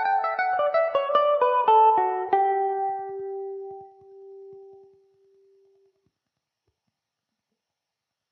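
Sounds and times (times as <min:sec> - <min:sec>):
Irish mandolin playing in D major: 0:00.0 - 0:05.8.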